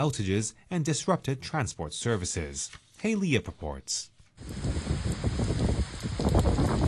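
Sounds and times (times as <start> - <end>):
speech: 0.0 - 4.7
torrential rain pounding down: 4.4 - 6.8.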